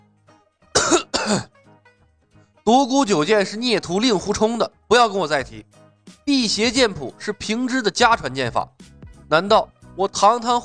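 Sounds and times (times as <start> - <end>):
person coughing: 0.8 - 1.5
speech: 1.3 - 1.6, 2.7 - 10.6.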